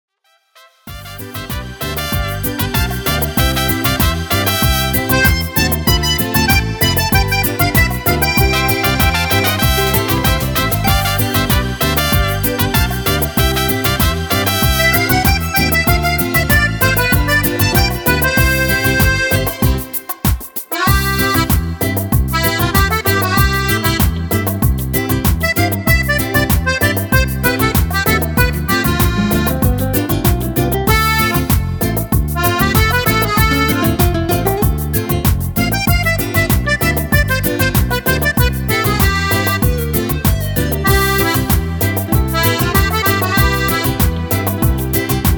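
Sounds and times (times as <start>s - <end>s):
cumbia music: 0.6s - 45.3s.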